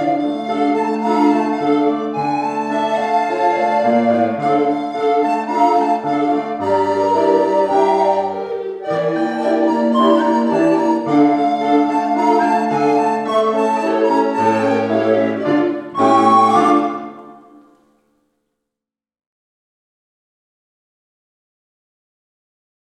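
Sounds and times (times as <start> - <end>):
tango music: 0.0 - 17.8.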